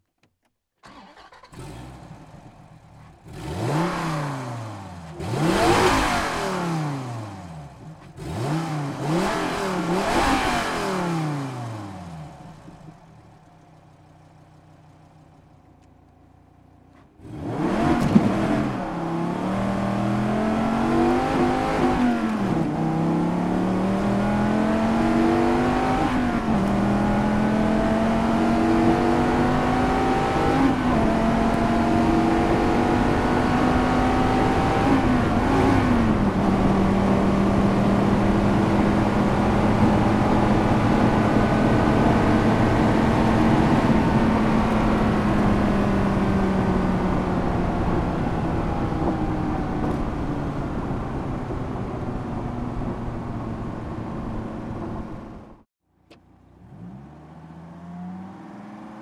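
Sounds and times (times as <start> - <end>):
SRT Viper GTS engine: 0.0 - 59.0.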